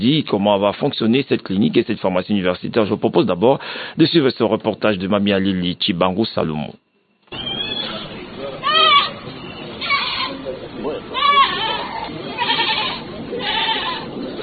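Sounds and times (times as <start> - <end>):
speech: 0.0 - 6.8
goats or sheep bleating at a veterinary clinic: 7.3 - 9.2, 9.8 - 10.4, 11.1 - 14.4
chatter: 7.3 - 14.4.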